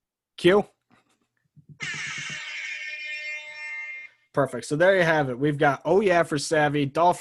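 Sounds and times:
speech: 0.4 - 0.8, 4.4 - 7.1
Rasta Horn buzzer: 1.8 - 4.1.

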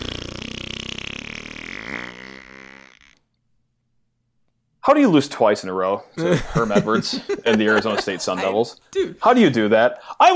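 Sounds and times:
fart sound effect: 0.0 - 3.3
speech: 4.9 - 10.3
laughter: 6.2 - 9.2.

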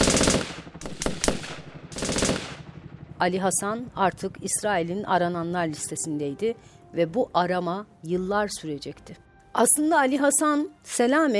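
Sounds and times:
machine gun fire: 0.0 - 3.0
speech: 3.2 - 11.3.

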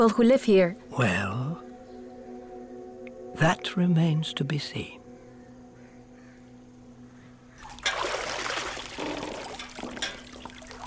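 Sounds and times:
speech: 0.0 - 1.4, 3.4 - 5.0
water splashing in a bath: 7.6 - 10.8.

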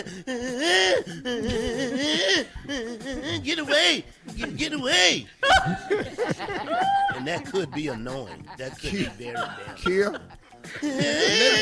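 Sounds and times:
man imitating frantic whimpering: 0.0 - 4.6, 9.2 - 11.5
laughter: 0.0 - 4.7, 5.4 - 11.5
speech: 0.0 - 11.5.

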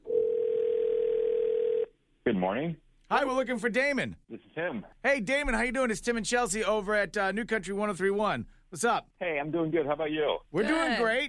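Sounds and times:
telephone line ringing out on a call: 0.0 - 1.9
speech: 2.3 - 11.2.

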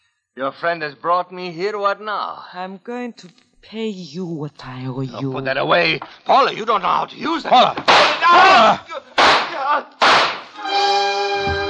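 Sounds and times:
speech: 0.4 - 9.0
gunshots fired from a handgun: 7.9 - 8.2, 9.2 - 10.6.

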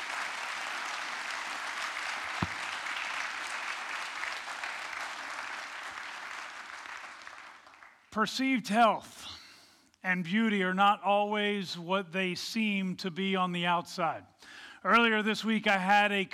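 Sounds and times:
crowd applauding: 0.0 - 8.1
speech: 8.2 - 9.3, 10.0 - 16.3.

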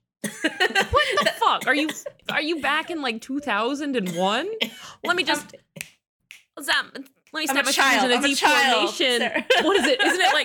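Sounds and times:
laughter: 0.4 - 1.4, 8.8 - 10.4
speech: 0.6 - 5.6, 6.6 - 10.4
finger snapping: 5.8 - 6.5.

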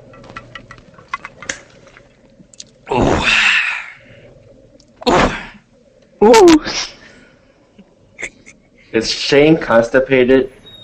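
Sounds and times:
person drinking lemon-flavored carbonated water: 1.8 - 5.6
speech: 2.9 - 3.4, 9.0 - 10.6.

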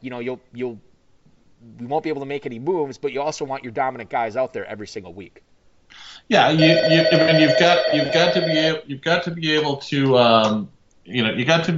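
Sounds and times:
speech: 0.0 - 0.9, 1.6 - 11.7
office telephone ringing: 6.5 - 8.8.

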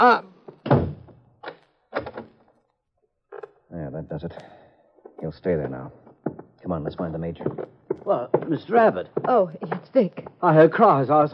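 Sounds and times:
door being shut: 0.5 - 2.4
speech: 4.2 - 4.6, 5.2 - 6.0, 6.6 - 11.3.

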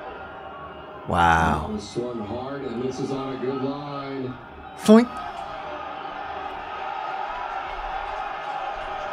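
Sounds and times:
sports fans screaming and cheering: 0.0 - 2.3, 3.2 - 9.1
speech: 1.0 - 5.4.

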